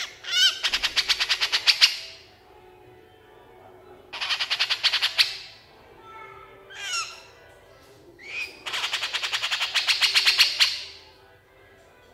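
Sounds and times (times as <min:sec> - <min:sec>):
Horsfield's bush lark song: 0:00.0 - 0:02.2, 0:04.1 - 0:05.6, 0:06.7 - 0:07.3, 0:08.2 - 0:11.1.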